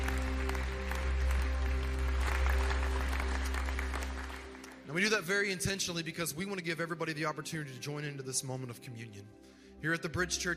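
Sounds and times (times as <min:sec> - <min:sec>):
church congregation clapping in welcome during a Sunday worship service: 0:00.0 - 0:05.7
speech: 0:05.0 - 0:10.5.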